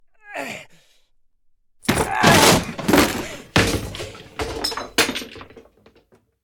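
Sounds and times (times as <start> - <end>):
cupboard being strained open: 1.9 - 4.4.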